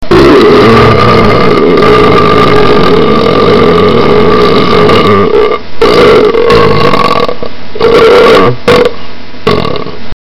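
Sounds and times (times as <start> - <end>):
person burping: 0.0 - 10.0.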